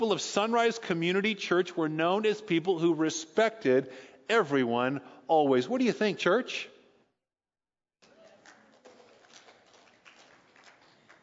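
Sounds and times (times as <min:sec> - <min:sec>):
speech: 0:00.0 - 0:06.7
quiet polite golf clap from audience: 0:08.0 - 0:11.2.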